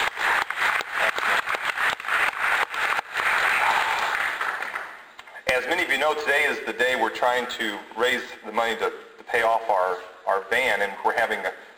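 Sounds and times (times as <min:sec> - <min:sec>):
applause: 0:00.0 - 0:05.1
speech: 0:05.8 - 0:11.6.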